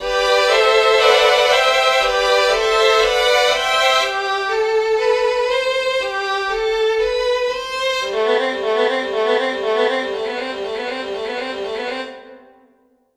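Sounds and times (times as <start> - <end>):
violin: 0.0 - 12.5.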